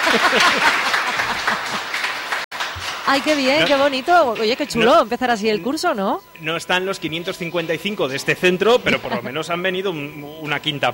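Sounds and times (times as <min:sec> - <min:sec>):
laughter: 0:00.0 - 0:02.0, 0:08.8 - 0:09.4
crowd of children clapping: 0:00.0 - 0:04.6
speech: 0:00.1 - 0:01.9, 0:03.1 - 0:10.9.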